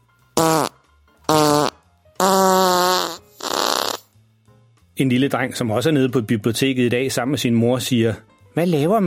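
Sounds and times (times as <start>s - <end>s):
man farting while straining: 0.4s - 4.1s
speech: 5.0s - 9.0s.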